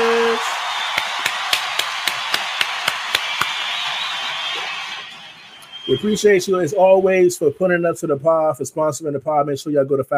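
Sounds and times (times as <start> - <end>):
applause: 0.0 - 5.4
speech: 5.9 - 10.1.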